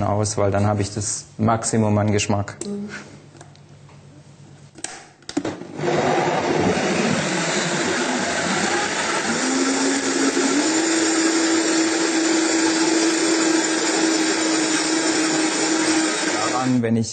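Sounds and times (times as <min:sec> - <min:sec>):
speech: 0:00.0 - 0:03.2
blender mixing mango purée: 0:05.4 - 0:16.8.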